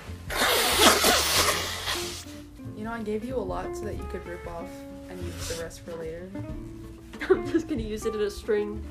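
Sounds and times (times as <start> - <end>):
nose blowing: 0.0 - 2.5
speech: 3.0 - 8.8.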